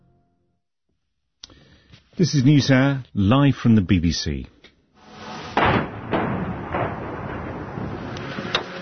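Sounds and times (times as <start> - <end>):
speech: 2.2 - 4.6
missiles striking Kiev overnight: 5.1 - 8.6.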